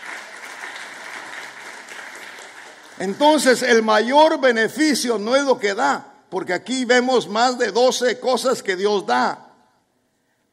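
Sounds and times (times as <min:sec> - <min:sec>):
church congregation applauding as an offering to God: 0:00.0 - 0:04.4
speech: 0:03.0 - 0:09.4.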